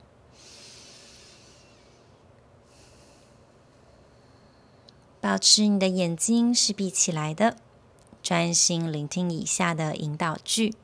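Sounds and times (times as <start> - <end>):
deep breath during guided meditation: 0.3 - 5.1
speech: 5.2 - 7.6, 8.3 - 10.8.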